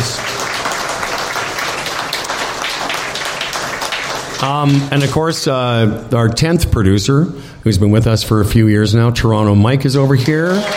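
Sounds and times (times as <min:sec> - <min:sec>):
crowd applause: 0:00.0 - 0:05.2, 0:10.0 - 0:10.7
speech: 0:04.4 - 0:10.7.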